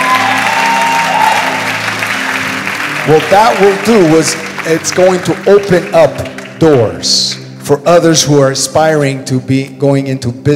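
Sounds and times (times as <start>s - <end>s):
audience applauding: 0.0s - 7.0s
speech: 3.1s - 10.5s.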